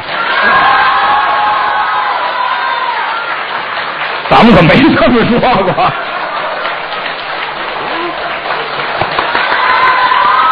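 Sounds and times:
large crowd cheering and whooping: 0.0 - 4.0, 5.6 - 10.5
audience applause: 0.0 - 10.5
people shouting: 0.1 - 3.2, 9.1 - 10.5
speech: 4.4 - 6.2.

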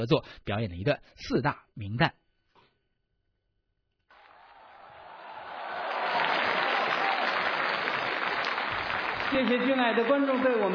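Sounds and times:
speech: 0.0 - 2.2, 9.3 - 10.7
large audience applause: 4.1 - 10.7.

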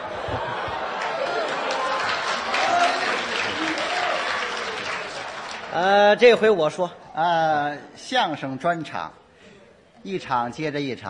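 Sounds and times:
audience applause: 0.0 - 6.2
speech: 5.8 - 9.2, 10.0 - 11.0.

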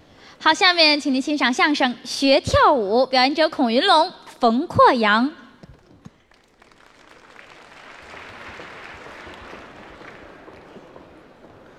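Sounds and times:
speech: 0.4 - 5.4
audience applause: 6.1 - 11.7.

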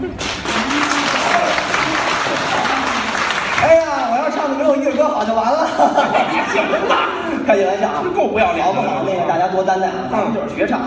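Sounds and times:
laughter: 0.0 - 3.4, 5.4 - 7.8
sustained audience applause: 0.0 - 4.6
speech: 5.2 - 10.8.

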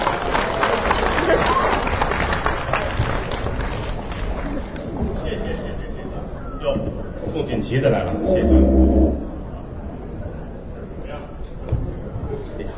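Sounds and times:
audience applause welcoming performers: 0.0 - 5.3
crowd murmur: 0.0 - 12.7
speech: 7.7 - 8.8.

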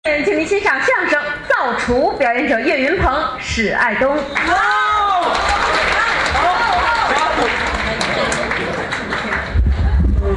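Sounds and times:
speech: 0.2 - 5.4
crowd shouting and cheering: 4.2 - 10.3
audience applause: 4.4 - 10.1.

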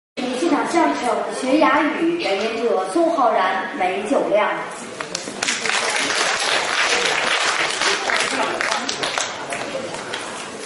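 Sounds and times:
speech: 0.6 - 5.0
audience applause: 5.4 - 10.4.

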